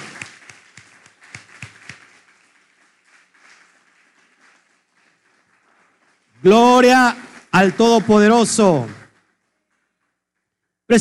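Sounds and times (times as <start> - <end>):
audience applause: 0.0 - 6.0
speech: 6.4 - 9.0.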